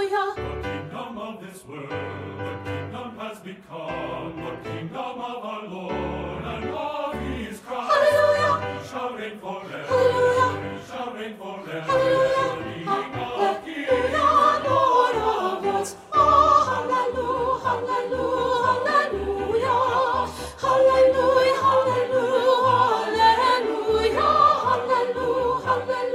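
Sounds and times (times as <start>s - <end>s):
soprano part louder in a practice track for singers: 0.0s - 26.1s.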